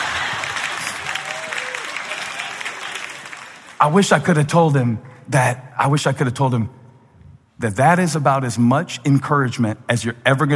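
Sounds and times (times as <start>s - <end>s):
audience applause: 0.0s - 3.9s
speech: 3.8s - 6.8s, 7.6s - 10.5s.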